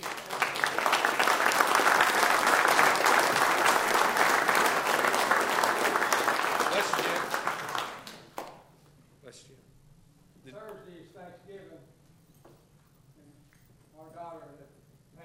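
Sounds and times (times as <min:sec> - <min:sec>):
audience applause: 0:00.0 - 0:08.5.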